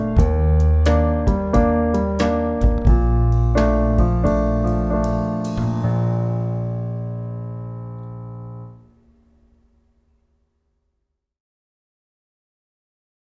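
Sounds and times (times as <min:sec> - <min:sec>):
jazz wind instruments backing: 0:00.0 - 0:08.8.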